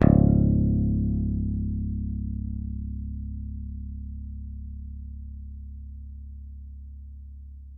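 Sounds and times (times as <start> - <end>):
Yamaha picked bass note C#1: 0.0 - 5.0.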